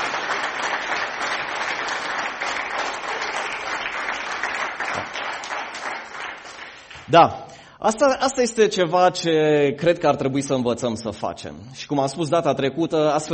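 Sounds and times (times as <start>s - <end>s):
audience applause: 0.0s - 7.1s
speech: 7.1s - 13.3s.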